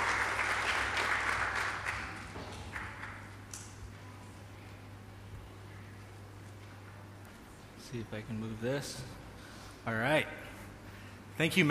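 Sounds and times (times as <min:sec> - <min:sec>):
audience applause: 0:00.0 - 0:03.3
low steady hum: 0:00.0 - 0:11.6
speech: 0:07.9 - 0:09.2, 0:09.8 - 0:10.4, 0:11.4 - 0:11.6.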